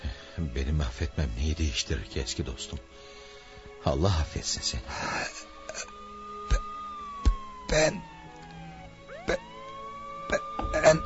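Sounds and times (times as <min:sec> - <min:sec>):
speech: 0:00.4 - 0:03.2, 0:03.8 - 0:05.9, 0:07.7 - 0:08.1, 0:09.3 - 0:09.5
ambulance siren approaching: 0:04.9 - 0:11.0.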